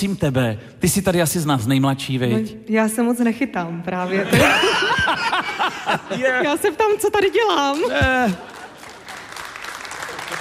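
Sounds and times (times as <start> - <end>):
speech: 0.0 - 8.6
laughter: 4.0 - 7.0, 7.7 - 9.2
lukewarm audience applause: 7.5 - 10.4.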